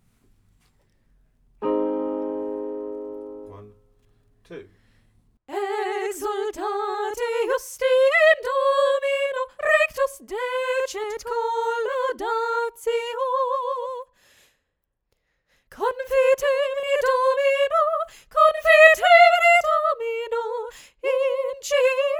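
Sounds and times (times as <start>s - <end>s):
soprano singing: 5.5s - 14.1s, 15.7s - 22.1s.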